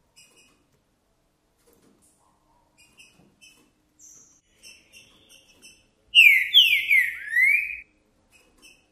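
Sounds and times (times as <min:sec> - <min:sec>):
green-winged saltator whistled song: 0:06.2 - 0:07.8.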